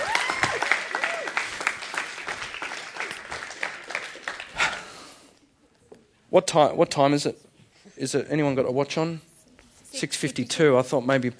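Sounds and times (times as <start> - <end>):
applause: 0.0 - 4.9
speech: 6.3 - 9.3, 9.9 - 11.3.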